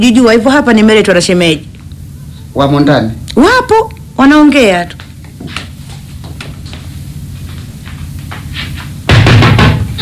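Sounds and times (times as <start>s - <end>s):
speech: 0.0s - 1.7s, 2.6s - 5.6s
loud knocking on a door: 9.0s - 10.0s.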